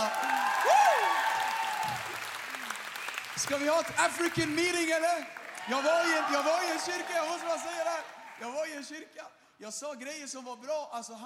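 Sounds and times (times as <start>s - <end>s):
audience applause: 0.0s - 8.9s
speech: 3.4s - 11.2s.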